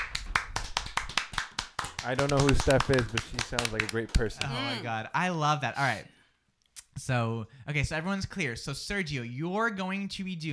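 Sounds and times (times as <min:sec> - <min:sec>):
sharp hand claps: 0:00.0 - 0:04.5
speech: 0:02.0 - 0:06.2, 0:07.0 - 0:10.5.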